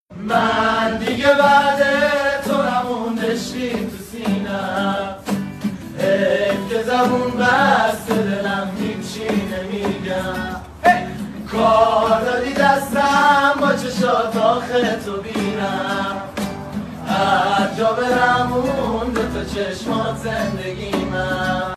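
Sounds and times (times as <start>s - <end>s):
guitar: 0.1s - 21.7s.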